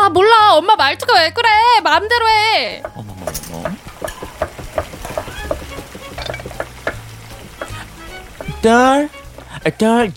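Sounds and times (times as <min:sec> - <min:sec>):
speech: 0:00.1 - 0:03.1, 0:08.6 - 0:10.1
utensils stirring and scraping: 0:02.8 - 0:09.6
pork belly sizzling and crackling in a pan: 0:03.0 - 0:09.8.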